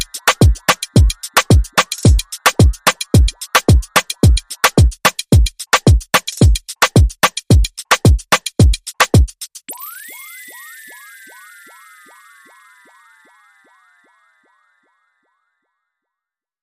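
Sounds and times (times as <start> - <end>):
music beat: 0.0 - 11.9.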